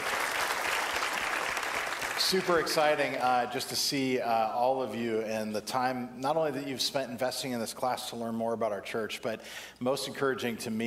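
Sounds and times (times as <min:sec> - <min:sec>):
audience applauding: 0:00.0 - 0:03.2
speech: 0:02.2 - 0:10.8.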